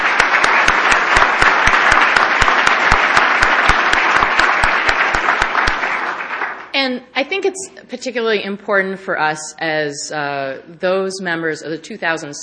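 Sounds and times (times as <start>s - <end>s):
audience applause: 0.0s - 6.8s
speech: 6.9s - 12.4s.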